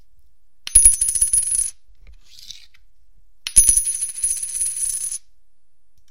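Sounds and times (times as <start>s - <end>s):
silver 1962 quarter coin: 0.7s - 1.8s, 3.5s - 5.3s.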